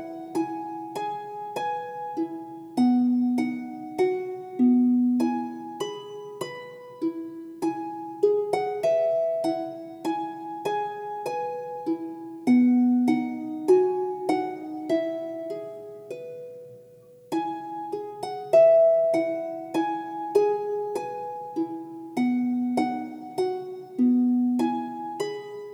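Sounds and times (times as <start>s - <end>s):
nursery rhyme melody on harp: 0.0s - 25.7s.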